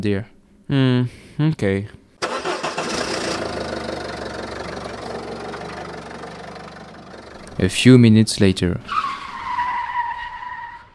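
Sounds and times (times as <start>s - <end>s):
speech: 0.0s - 2.0s, 7.6s - 9.0s
car engine cranking and starting: 2.2s - 9.3s.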